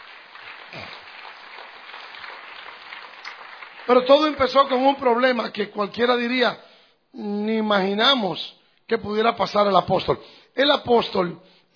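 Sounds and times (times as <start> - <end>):
audience applause: 0.0 - 4.9
speech: 3.9 - 11.7.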